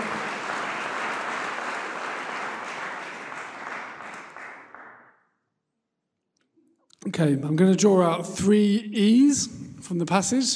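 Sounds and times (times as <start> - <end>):
crowd applauding: 0.0 - 5.2
speech: 7.1 - 10.5.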